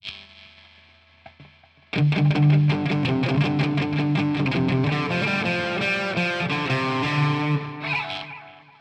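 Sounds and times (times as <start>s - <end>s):
lead melody: 2.0s - 8.3s.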